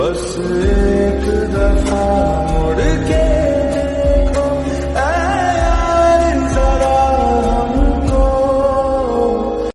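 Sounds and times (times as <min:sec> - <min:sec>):
lofi music: 0:00.1 - 0:09.7.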